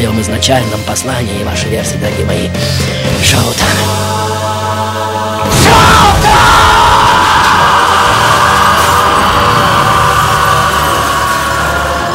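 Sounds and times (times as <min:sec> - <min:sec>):
speech: 0:00.0 - 0:04.1
man letting out a powerful bestial roar: 0:05.4 - 0:12.0.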